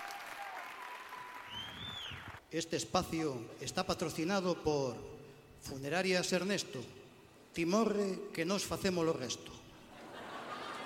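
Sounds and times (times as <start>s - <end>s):
audience applause: 0.0s - 2.4s
speech: 2.5s - 7.0s, 7.6s - 9.6s
laughter: 9.8s - 10.8s.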